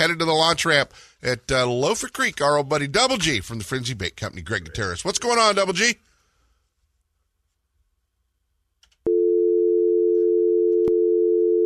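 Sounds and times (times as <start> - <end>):
speech: 0.0 - 6.1
dial tone: 9.1 - 11.6
phone line cutting off with a click: 10.0 - 11.6.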